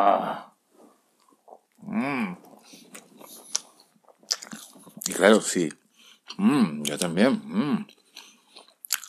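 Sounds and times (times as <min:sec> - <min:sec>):
speech: 0:01.9 - 0:02.8, 0:05.1 - 0:08.0
crunchy bites and wet chewing of churros dipped in chocolate: 0:02.4 - 0:07.1, 0:07.9 - 0:09.0.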